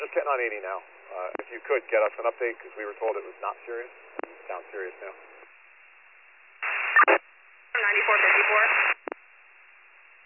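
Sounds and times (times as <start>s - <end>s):
radio static: 0.0s - 5.5s, 6.6s - 7.2s, 7.8s - 9.2s
speech: 0.2s - 5.3s, 7.9s - 8.8s.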